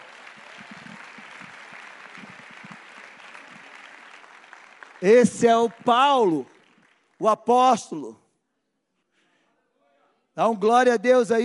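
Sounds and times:
audience applause: 0.0s - 7.2s
speech: 5.0s - 6.5s, 7.2s - 8.2s, 10.4s - 11.4s.

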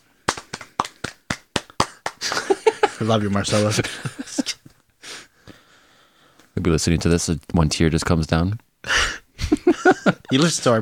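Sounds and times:
brisk hand clapping: 0.0s - 3.4s
laughter: 2.2s - 4.7s, 8.9s - 10.8s
speech: 3.0s - 4.2s, 6.6s - 9.0s, 10.3s - 10.8s.

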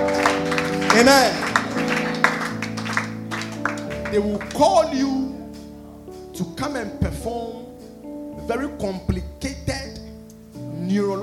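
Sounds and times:
audience clapping: 0.0s - 5.0s
speech: 1.0s - 1.4s, 4.1s - 5.3s, 6.4s - 7.6s, 8.5s - 9.8s, 10.9s - 11.2s.

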